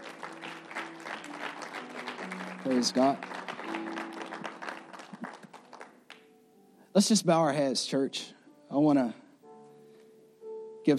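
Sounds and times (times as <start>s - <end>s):
audience hand clapping: 0.0s - 6.3s
speech: 2.6s - 3.4s, 7.0s - 9.2s.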